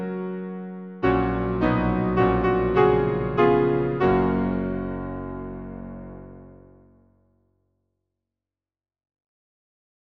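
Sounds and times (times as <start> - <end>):
hymn on piano: 0.0 - 7.0.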